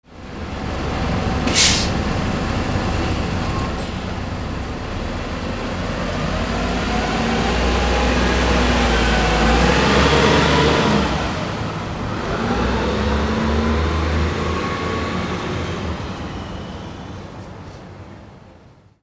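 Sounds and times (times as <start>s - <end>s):
vehicles: 0.0s - 18.7s.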